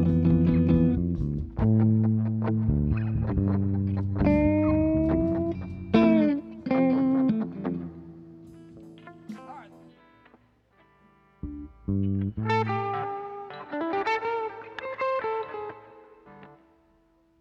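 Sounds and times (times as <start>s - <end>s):
bass: 0.0s - 6.4s, 11.4s - 13.0s
guitars: 0.0s - 17.3s.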